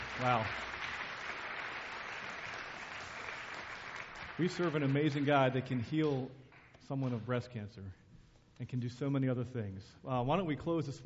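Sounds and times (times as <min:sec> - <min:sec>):
audience clapping: 0:00.0 - 0:07.2
speech: 0:00.2 - 0:00.8, 0:04.4 - 0:08.0, 0:08.6 - 0:11.0.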